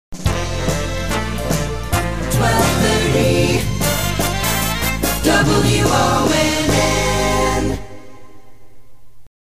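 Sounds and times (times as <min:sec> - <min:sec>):
jingle: 0:01.0 - 0:07.7.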